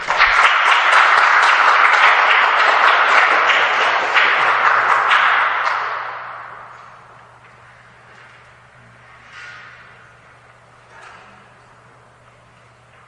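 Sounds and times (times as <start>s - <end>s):
church congregation applauding to welcome a guest pastor: 0.0s - 7.6s.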